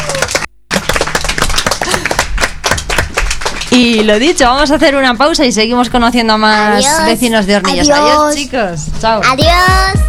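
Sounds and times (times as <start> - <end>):
people clapping: 0.0 - 4.4
speech: 3.7 - 10.0.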